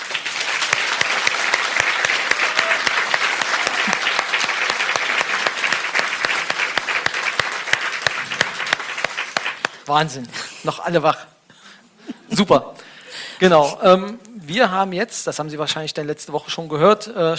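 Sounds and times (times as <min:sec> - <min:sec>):
audience applause: 0:00.0 - 0:09.8
speech: 0:09.9 - 0:11.3, 0:12.4 - 0:12.8, 0:13.4 - 0:17.3.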